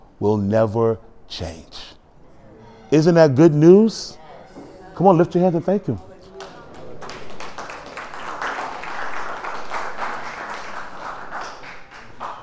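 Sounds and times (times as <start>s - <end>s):
speech: 0.2s - 1.8s, 2.9s - 4.2s, 5.0s - 6.1s
murmur of voices: 2.0s - 10.2s
audience clapping: 6.3s - 12.4s.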